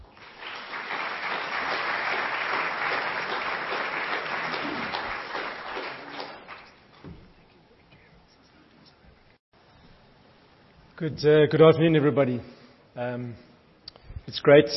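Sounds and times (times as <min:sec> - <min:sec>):
audience applause welcoming guest speakers: 0:00.0 - 0:06.8
speech: 0:11.0 - 0:13.5, 0:14.3 - 0:14.7.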